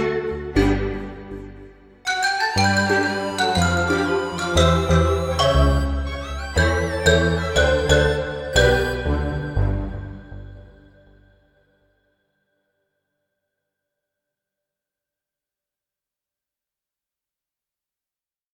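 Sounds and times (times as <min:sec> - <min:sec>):
cheerful ambient music: 0:00.0 - 0:11.6.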